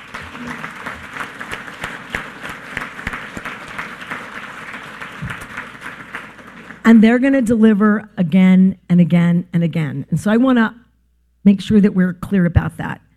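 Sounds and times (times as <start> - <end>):
crowd applauding: 0.0 - 6.9
speech: 6.9 - 10.8, 11.4 - 13.0.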